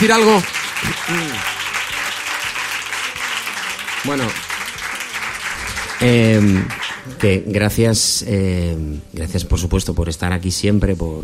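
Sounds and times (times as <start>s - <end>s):
speech: 0.0s - 1.5s, 4.0s - 4.4s, 6.0s - 11.2s
applause: 0.0s - 7.3s.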